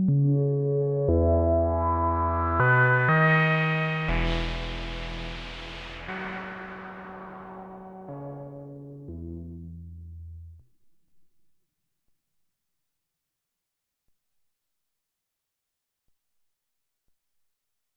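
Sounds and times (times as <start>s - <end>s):
analog synthesizer with three VCOs, wet: 0.0s - 10.6s.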